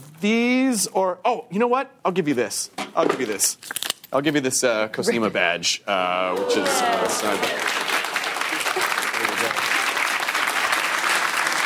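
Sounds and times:
speech: 0.2s - 7.8s
audience applause: 6.3s - 11.6s.

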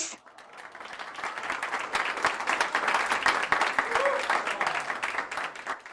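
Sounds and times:
audience applause: 0.2s - 5.9s.

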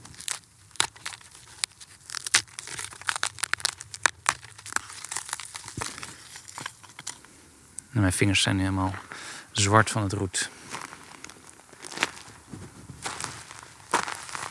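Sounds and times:
dry brittle charred wood crumbled and snapped by hand: 0.0s - 7.4s, 10.7s - 14.5s
faint noise: 0.0s - 14.5s
speech: 8.0s - 10.6s.

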